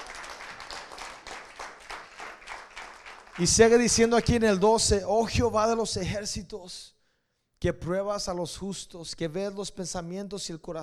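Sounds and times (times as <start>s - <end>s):
crowd applauding: 0.0s - 4.4s
speech: 3.4s - 7.0s, 7.6s - 10.8s.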